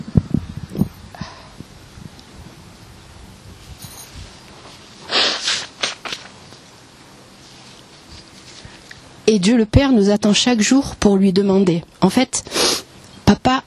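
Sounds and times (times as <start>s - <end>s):
shuffling and low rustling: 3.5s - 9.1s
nasal sniffing from a runny nose: 5.0s - 5.8s, 12.5s - 12.9s
speech: 9.3s - 12.6s.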